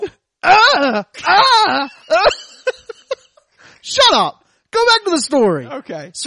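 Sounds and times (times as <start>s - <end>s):
voice imitating a tennis player's groan: 0.0s - 2.4s
speech: 0.4s - 2.4s, 3.8s - 6.2s
laughter: 1.3s - 3.4s.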